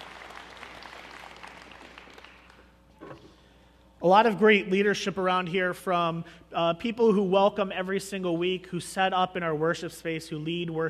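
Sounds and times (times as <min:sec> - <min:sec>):
church congregation applauding: 0:00.0 - 0:02.8
speech: 0:04.0 - 0:10.8.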